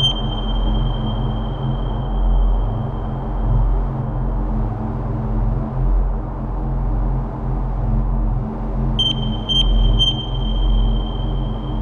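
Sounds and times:
quick electronic beeps: 0.0s - 1.0s, 9.0s - 11.6s
thin high whine: 0.0s - 2.6s, 9.0s - 11.8s
low droning hum: 0.0s - 11.8s.

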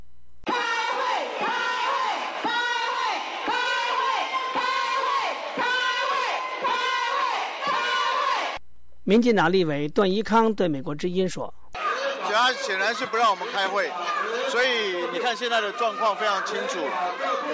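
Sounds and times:
legislators in Taiwan's Legislative Yuan chanting in protest: 0.5s - 8.6s, 11.8s - 17.5s
speech: 9.1s - 11.6s, 12.4s - 17.5s.

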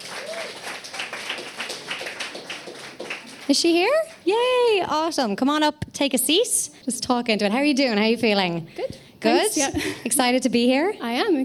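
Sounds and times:
audience applause: 0.0s - 3.7s
speech: 3.5s - 11.4s.

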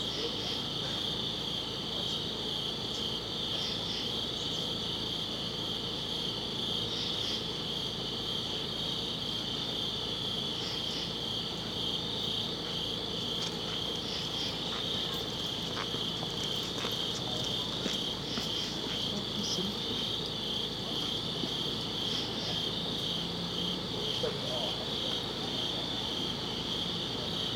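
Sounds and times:
crickets chirping in a chorus: 0.0s - 27.5s.

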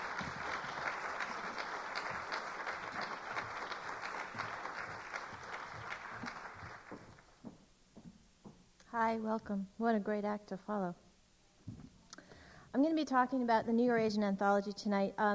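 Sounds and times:
audience applause: 0.0s - 7.5s
speech: 9.0s - 11.0s, 12.8s - 15.3s.

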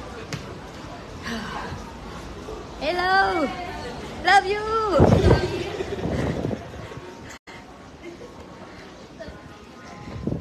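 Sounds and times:
speech: 2.8s - 5.5s
strong wind blowing outdoors: 4.9s - 7.2s, 9.9s - 10.3s.

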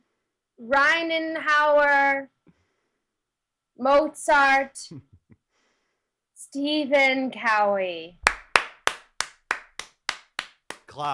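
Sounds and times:
speech: 0.6s - 2.4s, 3.8s - 5.1s, 6.5s - 8.2s, 11.0s - 11.1s
sharp hand claps: 8.2s - 11.1s.

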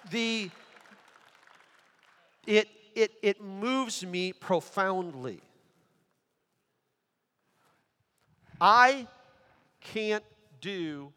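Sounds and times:
audience clapping: 0.0s - 2.5s
speech: 0.1s - 0.6s, 2.4s - 5.5s, 8.6s - 9.2s, 9.8s - 11.1s.

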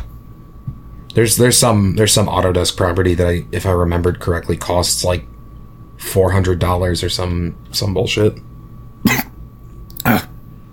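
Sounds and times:
speech: 1.2s - 5.3s, 6.0s - 9.2s
sharp loud coughs from choking: 9.0s - 9.4s, 10.0s - 10.3s.

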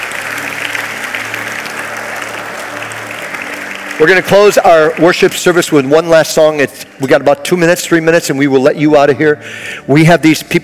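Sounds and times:
audience applause: 0.0s - 6.6s
speech: 4.0s - 10.6s.

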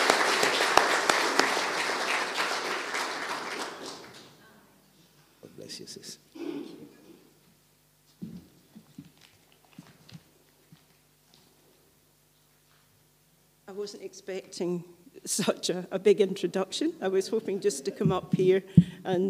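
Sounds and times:
audience clapping: 0.0s - 4.4s
speech: 5.8s - 6.4s, 13.8s - 19.2s.

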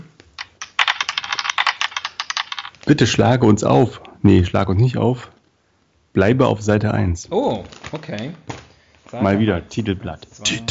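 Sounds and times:
dice rattling and tumbling: 0.4s - 2.9s
speech: 2.9s - 5.4s, 6.1s - 8.5s, 9.1s - 10.6s.

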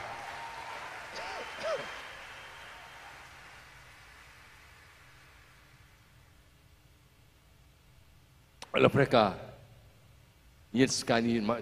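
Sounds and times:
brief voices and cheers: 0.0s - 3.9s
audience applause: 0.0s - 5.9s
speech: 8.8s - 9.4s, 10.7s - 11.6s.

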